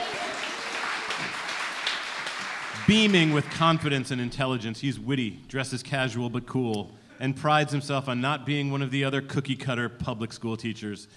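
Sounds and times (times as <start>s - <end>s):
raucous applause: 0.0s - 3.9s
speech: 2.9s - 11.1s.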